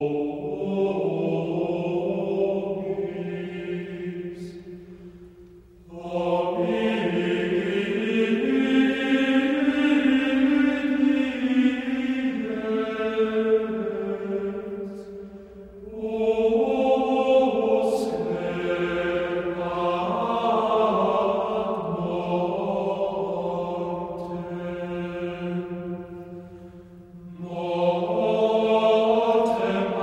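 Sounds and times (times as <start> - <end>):
monks chanting: 0.0 - 5.1, 5.9 - 30.0.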